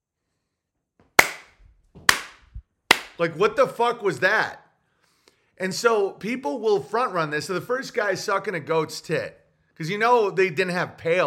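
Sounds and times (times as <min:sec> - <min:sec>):
hand claps: 0:01.2 - 0:03.2
speech: 0:03.2 - 0:04.6, 0:05.6 - 0:11.2.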